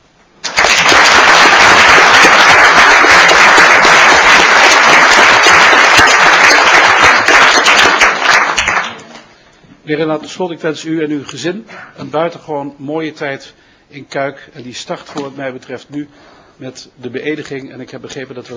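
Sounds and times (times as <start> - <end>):
audience applause from a large crowd in a hall: 0.4 - 9.1
speech: 9.9 - 18.5.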